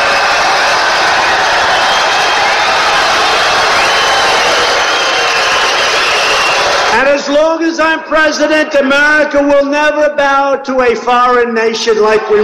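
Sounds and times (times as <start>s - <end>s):
large crowd cheering and roaring at a rally: 0.0s - 7.4s, 11.9s - 12.4s
speech: 7.2s - 12.4s.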